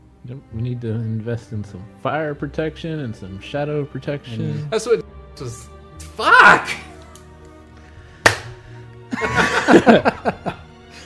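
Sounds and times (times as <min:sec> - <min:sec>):
speech: 0:00.3 - 0:06.8, 0:09.7 - 0:10.4
loud hand clap: 0:08.2 - 0:08.7
laughter: 0:09.1 - 0:10.6.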